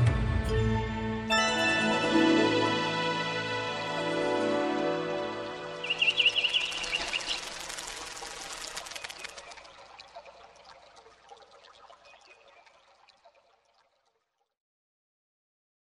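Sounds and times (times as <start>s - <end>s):
music: 0.0s - 6.4s.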